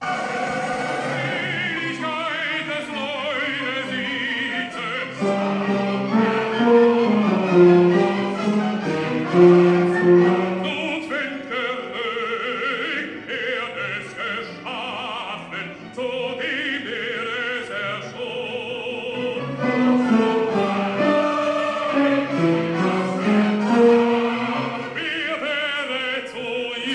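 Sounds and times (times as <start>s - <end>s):
tenors singing: 0.0s - 26.9s.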